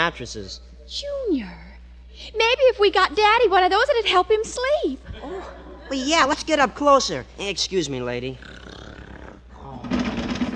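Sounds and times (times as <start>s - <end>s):
speech: 0.0s - 8.6s
laughter: 5.1s - 6.2s
loud snoring: 8.4s - 9.4s.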